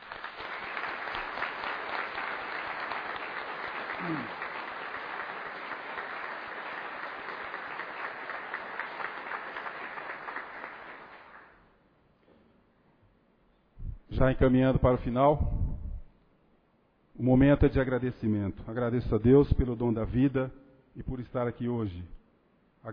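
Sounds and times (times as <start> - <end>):
round of applause: 0.0 - 11.6
speech: 4.0 - 4.4, 14.2 - 15.5, 17.2 - 22.2.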